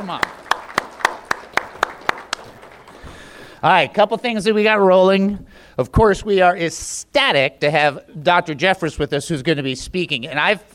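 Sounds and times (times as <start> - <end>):
speech: 0.0 - 0.5, 3.6 - 10.7
audience applause: 0.0 - 3.6.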